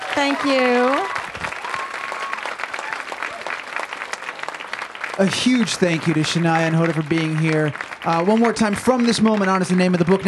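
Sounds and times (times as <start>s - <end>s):
audience applause: 0.0s - 10.2s
speech: 0.2s - 1.1s, 5.2s - 10.2s.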